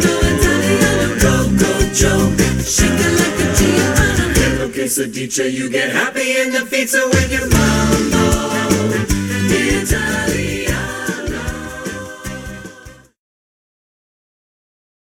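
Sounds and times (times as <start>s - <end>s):
SATB four-part choir singing: 0.0s - 13.2s.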